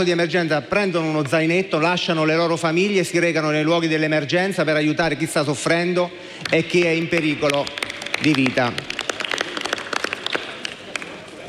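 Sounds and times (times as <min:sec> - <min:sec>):
speech: 0:00.0 - 0:09.0
crowd clapping: 0:06.3 - 0:11.4.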